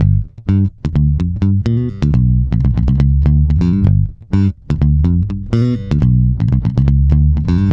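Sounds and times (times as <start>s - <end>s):
boogaloo bass in G: 0.0s - 7.7s.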